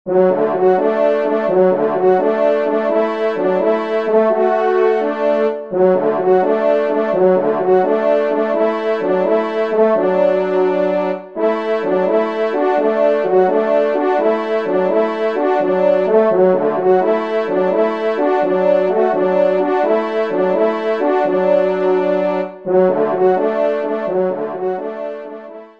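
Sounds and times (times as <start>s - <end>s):
trompe hunting horn playing a fast hunting piece: 0.1s - 25.7s.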